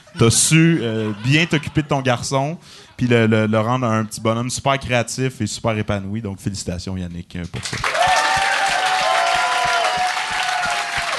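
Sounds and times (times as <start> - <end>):
laughter: 0.0 - 2.5
speech: 0.2 - 8.1
audience applause: 7.6 - 11.1.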